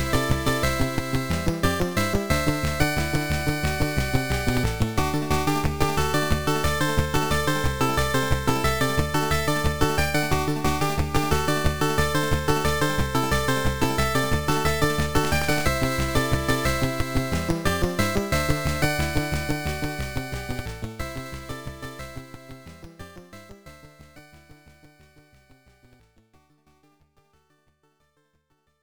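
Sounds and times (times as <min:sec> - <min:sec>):
MSX power-up background music: 0:00.0 - 0:22.4.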